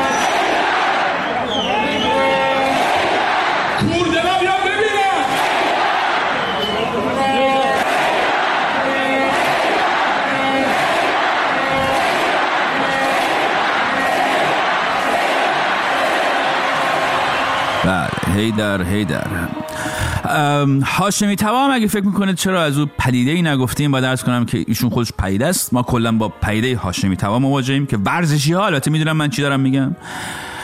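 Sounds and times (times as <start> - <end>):
Icelandic football fans chanting and cheering: 0.0 - 20.2
speech: 18.6 - 19.4, 20.4 - 30.5.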